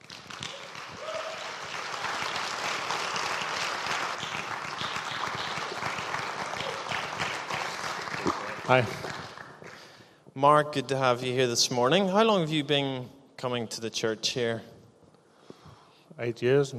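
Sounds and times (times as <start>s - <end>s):
church congregation applauding during a morning service: 0.0s - 10.0s
speech: 8.7s - 9.1s, 10.4s - 14.7s, 16.2s - 16.7s.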